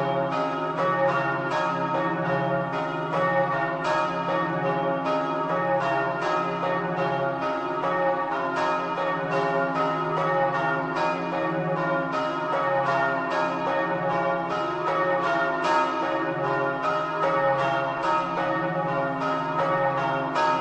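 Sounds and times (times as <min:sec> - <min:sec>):
church bells ringing in Pontebba: 0:00.0 - 0:20.6.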